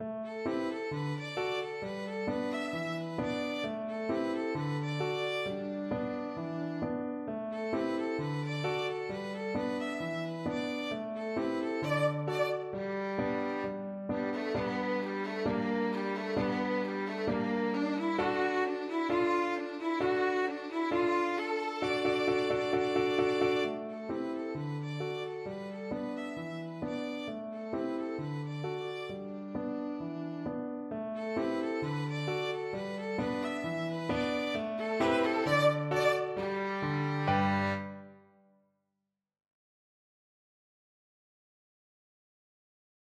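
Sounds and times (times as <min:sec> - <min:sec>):
ragtime on violin: 0:00.3 - 0:30.6, 0:31.2 - 0:38.2.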